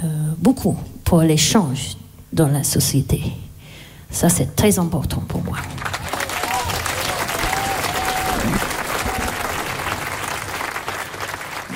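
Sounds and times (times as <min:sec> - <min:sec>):
speech: 0:00.0 - 0:03.4, 0:04.1 - 0:05.9
audience applause: 0:05.7 - 0:11.7.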